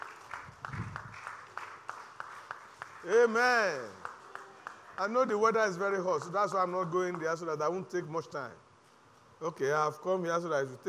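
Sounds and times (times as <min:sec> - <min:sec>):
audience clapping hands: 0:00.0 - 0:07.7
speech: 0:03.0 - 0:04.0, 0:05.0 - 0:08.6, 0:09.4 - 0:10.8.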